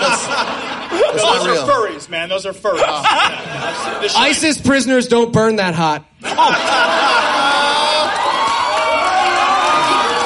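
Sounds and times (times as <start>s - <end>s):
laughter: 0.0s - 2.0s, 2.7s - 4.4s, 6.2s - 8.4s
speech: 1.1s - 7.3s
audience cheering: 6.4s - 10.2s.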